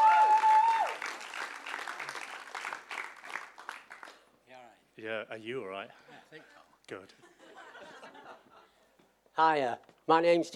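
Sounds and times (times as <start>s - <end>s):
group clapping: 0.0s - 4.3s
speech: 5.0s - 7.4s, 9.4s - 10.5s
laughter: 6.0s - 8.8s.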